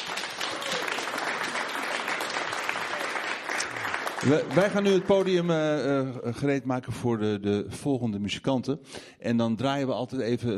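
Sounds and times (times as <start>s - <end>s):
audience applause: 0.0s - 5.8s
speech: 4.2s - 10.5s.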